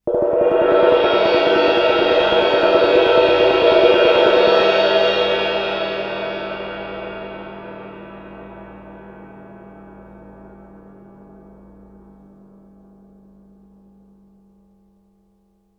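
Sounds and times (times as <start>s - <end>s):
ride cymbal mallet roll on suspended cymbals: 0.0s - 12.0s.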